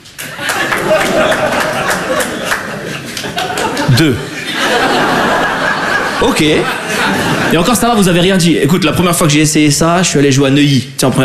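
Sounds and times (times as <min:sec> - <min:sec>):
scattered applause from an audience: 0:00.0 - 0:04.1
laughter: 0:00.2 - 0:08.3
speech: 0:04.0 - 0:04.8, 0:06.2 - 0:11.2.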